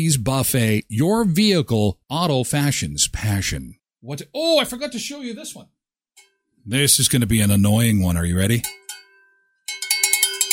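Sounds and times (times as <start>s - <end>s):
speech: 0.0s - 5.8s, 6.6s - 8.8s
bell ringing: 8.6s - 10.5s.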